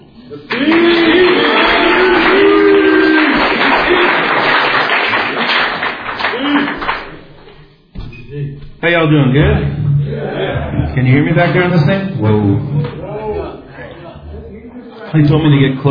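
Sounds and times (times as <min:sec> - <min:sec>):
speech: 0:00.3 - 0:01.0, 0:08.8 - 0:09.8, 0:11.0 - 0:13.0, 0:15.1 - 0:15.8
laughter: 0:00.3 - 0:05.2, 0:10.0 - 0:15.8
audience applause welcoming a speaker at a San Clemente recovery meeting: 0:00.4 - 0:07.5.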